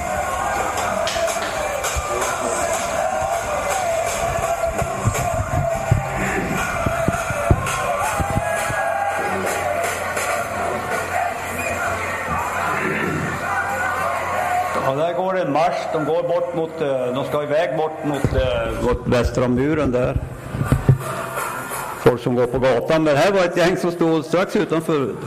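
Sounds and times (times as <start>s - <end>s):
shuffling of dancing crowd: 0.0s - 11.4s, 18.2s - 22.0s
whoops and shouts: 0.0s - 14.8s
street crowd voices: 0.0s - 25.2s
speech: 15.7s - 20.4s, 22.2s - 25.2s.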